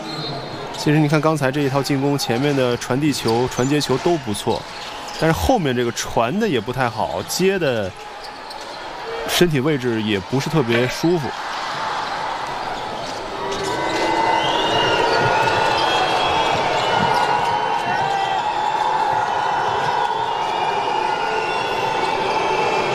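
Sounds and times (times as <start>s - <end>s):
speech: 0.8s - 8.1s, 9.3s - 11.5s
home fans booing the visiting team: 1.3s - 22.9s.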